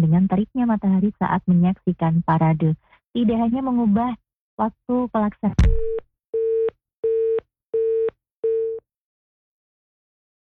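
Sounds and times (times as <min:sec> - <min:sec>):
speech: 0:00.0 - 0:06.4
phone busy tone after a dropped call: 0:05.8 - 0:08.8.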